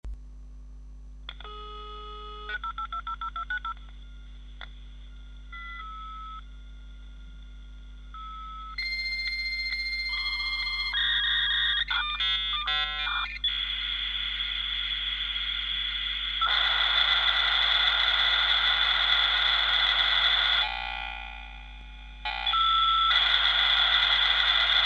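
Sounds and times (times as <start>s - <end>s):
dial-up modem connecting: 1.3s - 4.0s, 8.2s - 20.6s, 22.5s - 24.8s.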